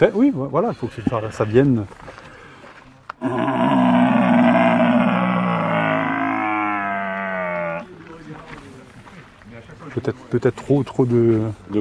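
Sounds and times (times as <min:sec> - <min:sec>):
speech: 0:00.0 - 0:02.3, 0:03.2 - 0:04.1, 0:09.9 - 0:11.7
voice imitating a bellowing stag: 0:03.2 - 0:07.9.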